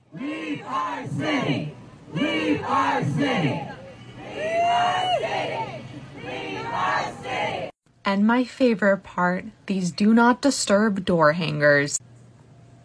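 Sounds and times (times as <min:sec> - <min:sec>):
protest crowd chanting: 0:00.0 - 0:07.8
speech: 0:00.6 - 0:03.7, 0:08.1 - 0:12.1.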